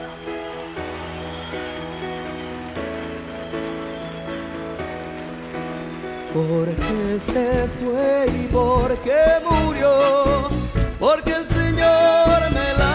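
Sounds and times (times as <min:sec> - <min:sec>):
audience applause for the choir: 0:00.0 - 0:07.2
speech: 0:06.3 - 0:12.8.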